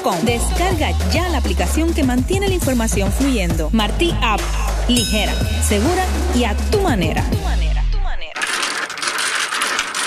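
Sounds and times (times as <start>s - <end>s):
speech: 0.0s - 7.8s
domino tiles clacking together: 8.3s - 10.0s.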